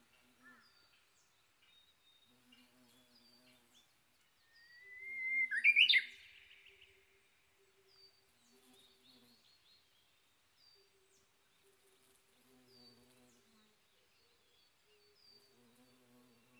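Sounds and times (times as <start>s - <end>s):
Japanese bush warbler whistle phrase: 4.8s - 6.1s.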